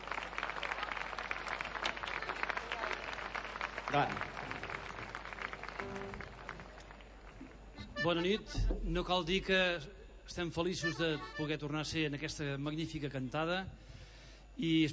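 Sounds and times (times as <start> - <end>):
audience applause: 0.0 - 7.8
speech: 3.9 - 4.3, 8.0 - 14.0, 14.6 - 14.9.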